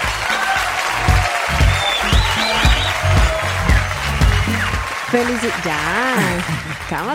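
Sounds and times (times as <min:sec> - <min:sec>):
crowd applause: 0:00.0 - 0:07.1
whistles: 0:01.6 - 0:04.8
speech: 0:05.1 - 0:07.1.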